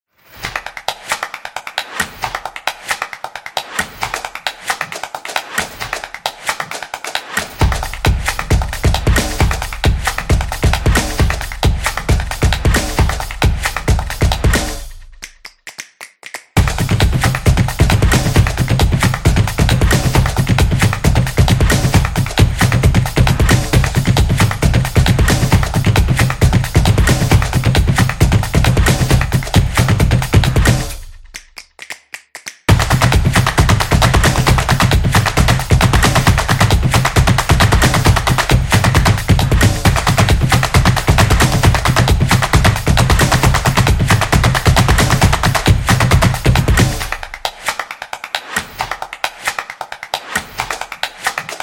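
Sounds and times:
percussion action teaser music: 0:00.3 - 0:51.6.

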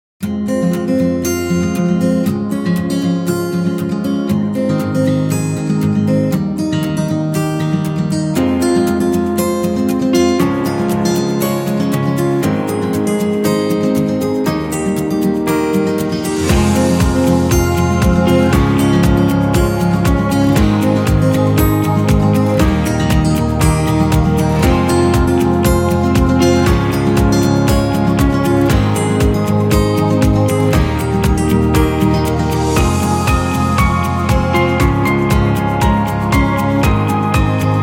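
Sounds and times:
romantic guitar music: 0:00.2 - 0:37.8.

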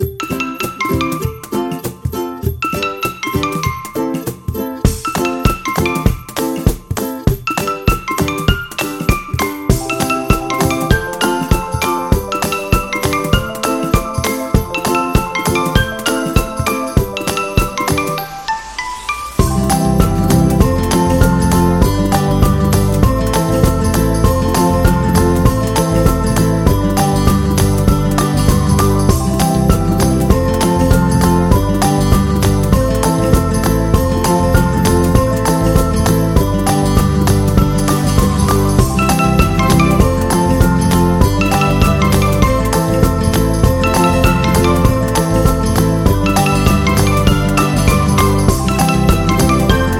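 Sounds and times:
Hawaii ukulele: 0:00.0 - 0:49.9.

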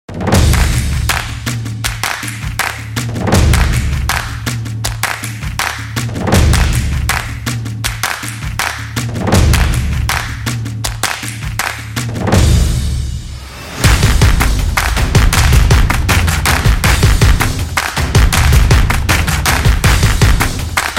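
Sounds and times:
percussive football music: 0:00.1 - 0:20.9.

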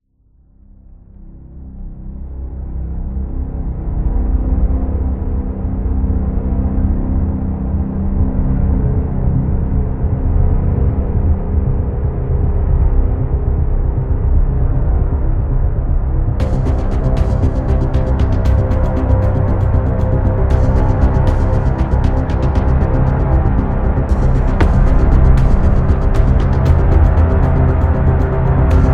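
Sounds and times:
dark ambient music: 0:00.6 - 0:28.9.

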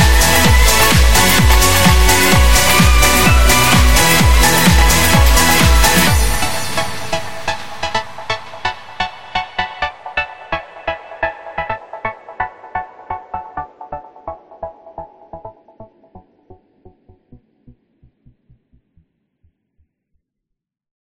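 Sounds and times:
summer pop corporate music: 0:00.0 - 0:15.6.

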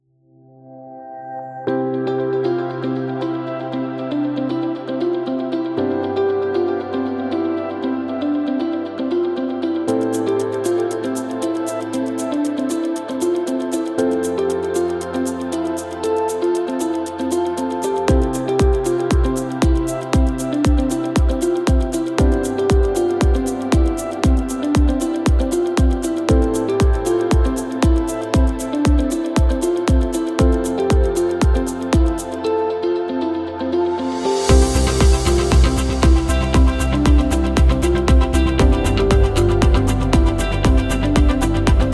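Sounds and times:
upbeat medical music: 0:01.7 - 0:41.9.

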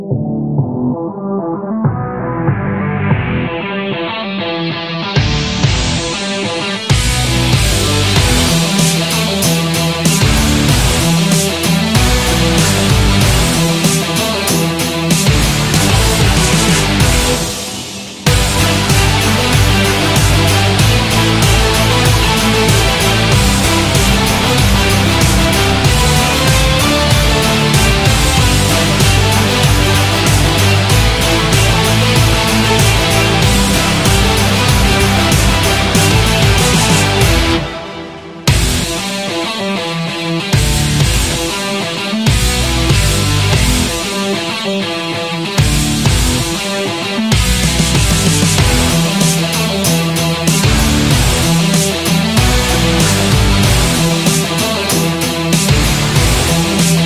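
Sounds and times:
upbeat rock music: 0:00.2 - 0:57.0.

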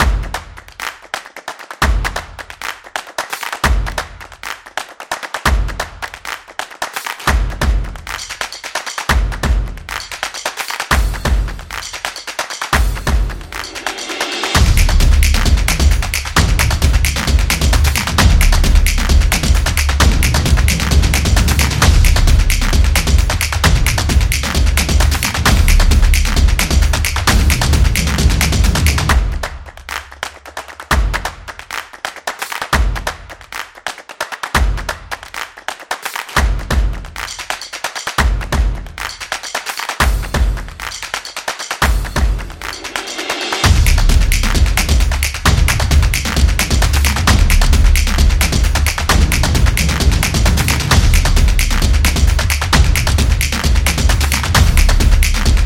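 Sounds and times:
percussion: 0:00.0 - 0:55.6.

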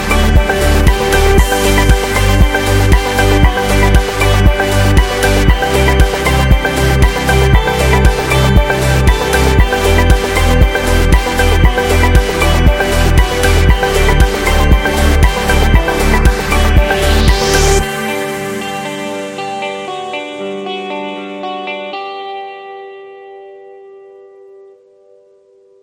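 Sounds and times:
positive corporate dance music: 0:00.0 - 0:20.2.

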